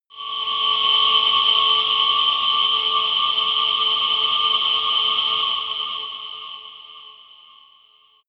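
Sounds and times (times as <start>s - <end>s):
sci-fi drones: 0.1s - 7.4s.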